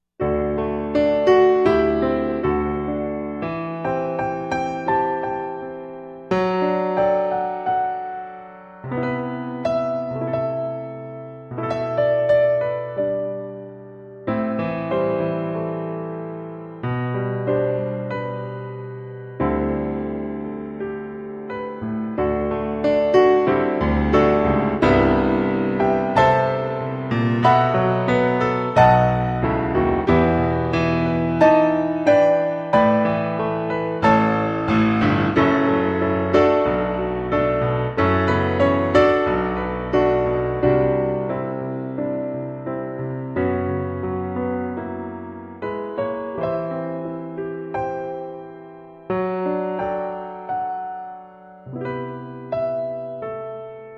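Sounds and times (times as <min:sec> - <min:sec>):
piano G note: 0:00.2 - 0:53.9.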